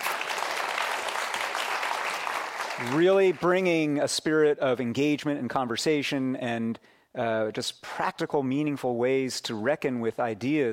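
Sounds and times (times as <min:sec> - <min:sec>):
audience applause at a civic event in Los Angeles: 0:00.0 - 0:03.4
speech: 0:02.8 - 0:10.7.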